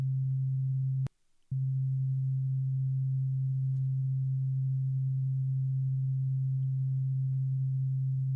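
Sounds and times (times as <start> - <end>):
7 hertz theta binaural beat low pure hum: 0.0 - 8.3.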